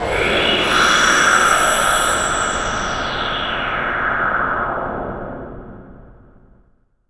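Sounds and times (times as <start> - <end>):
noise production effect: 0.0 - 7.0.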